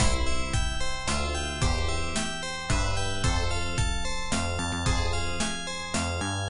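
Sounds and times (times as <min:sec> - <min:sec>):
slow romantic bells theme loop: 0:00.0 - 0:06.4.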